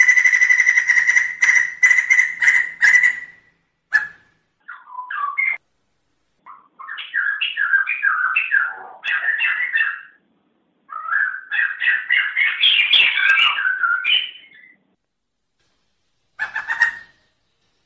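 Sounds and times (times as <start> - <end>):
bird warbling song: 0.0 - 5.6, 6.4 - 10.2, 10.9 - 14.8, 16.4 - 17.8.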